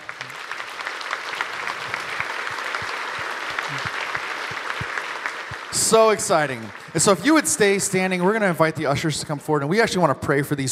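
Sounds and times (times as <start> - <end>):
audience applause: 0.0 - 8.4
speech: 5.9 - 10.7.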